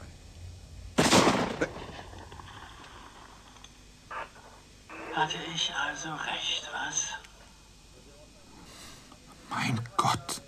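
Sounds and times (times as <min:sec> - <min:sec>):
loud gunshot: 0:01.0 - 0:02.0
speech: 0:01.6 - 0:01.8, 0:05.2 - 0:07.2.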